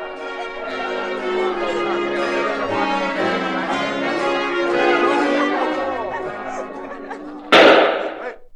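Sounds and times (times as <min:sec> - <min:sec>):
laughter: 0:00.1 - 0:08.4
gunshot: 0:07.5 - 0:08.3.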